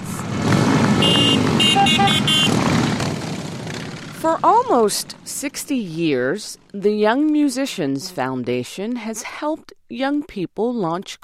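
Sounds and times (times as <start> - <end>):
motorcycles riding in a parade: 0.0 - 8.1
horn toots: 1.0 - 2.8
speech: 4.2 - 11.2.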